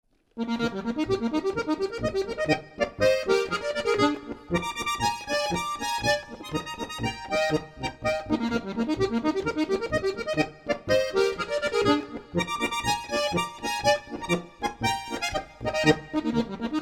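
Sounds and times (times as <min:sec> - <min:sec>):
polka music: 0:00.4 - 0:16.8.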